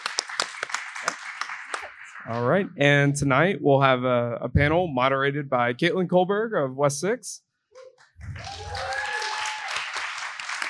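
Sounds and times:
audience applause and clapping: 0.0 - 2.4, 8.2 - 10.6
speech: 2.2 - 7.4.

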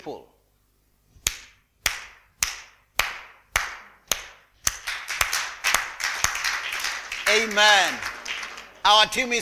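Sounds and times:
speech: 0.0 - 0.3, 7.3 - 8.1, 8.8 - 9.3
crowd clapping hands in rhythm: 1.9 - 9.3.

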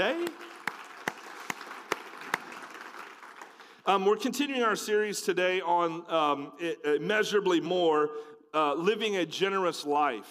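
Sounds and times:
audience hand clapping applause: 0.0 - 4.0
speech: 3.9 - 10.3.

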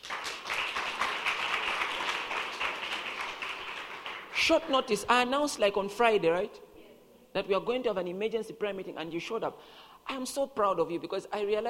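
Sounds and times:
audience clapping: 0.0 - 4.5
speech: 4.5 - 6.7, 7.4 - 11.6.

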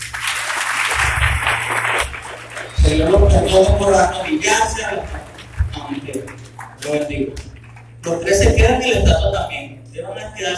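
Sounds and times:
audience applause: 0.0 - 7.9
low hum: 0.0 - 10.5
speech: 2.9 - 10.5.

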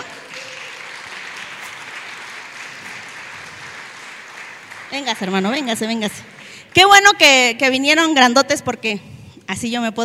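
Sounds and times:
audience applause: 0.0 - 5.8
speech: 4.9 - 10.0.

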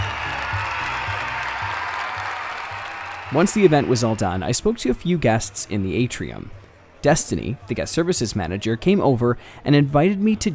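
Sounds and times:
audience applause: 0.0 - 5.4
speech: 3.3 - 10.5.

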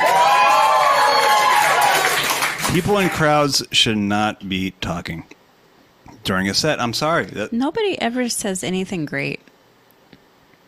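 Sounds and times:
audience cheering and shouting: 0.0 - 2.1
speech: 2.7 - 5.4, 6.2 - 9.4.

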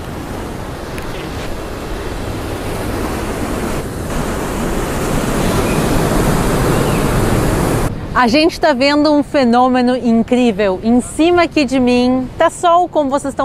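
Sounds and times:
rushing water of a river flowing through the desert in Israel: 0.0 - 8.4
speech: 8.2 - 13.4.

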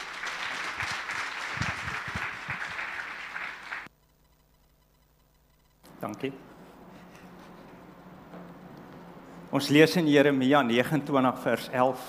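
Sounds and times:
audience applause: 0.0 - 3.9
speech: 6.0 - 6.5, 9.5 - 12.0.

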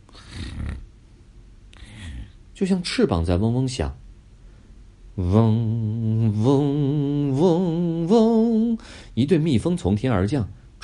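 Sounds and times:
faint breathing: 0.0 - 0.8, 1.7 - 2.4, 4.4 - 4.9, 8.8 - 9.2
soft snoring: 0.1 - 0.9, 1.8 - 2.4
speech: 2.6 - 4.0, 5.2 - 10.6.

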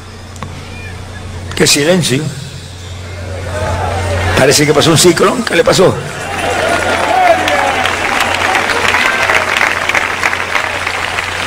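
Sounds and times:
speech: 1.6 - 2.5, 4.4 - 6.6
audience applause: 6.2 - 11.4.

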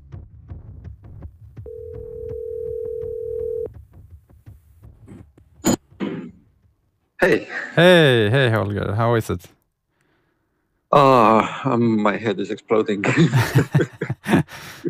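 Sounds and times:
low rhythmic thumping: 0.4 - 6.8
telephone ringing tone: 1.7 - 3.7
speech: 7.2 - 9.6, 10.9 - 14.8
laughter: 13.0 - 14.8.

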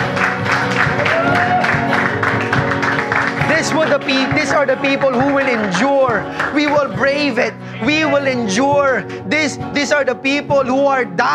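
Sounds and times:
audience applause at a church service in Antipolo City: 0.0 - 7.2
crowd noise at a church service in Antipolo City: 0.0 - 11.1
speech: 4.6 - 11.3.

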